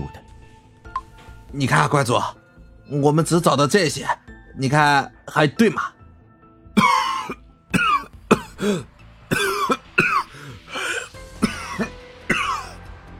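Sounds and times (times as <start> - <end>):
speech: 1.5 - 6.0, 8.6 - 9.4
elderly Taoist temple master coughing in a harsh raspy fit: 6.8 - 12.8.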